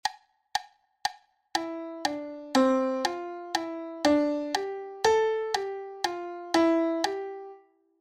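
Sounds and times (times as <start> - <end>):
syncopated rhythm: 0.0 - 7.6.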